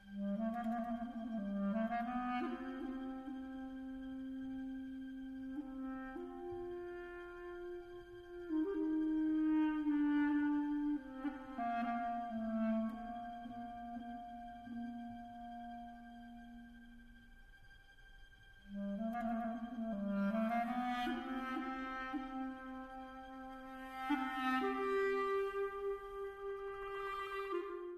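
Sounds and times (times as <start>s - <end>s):
clarinet doina: 0.0s - 27.9s.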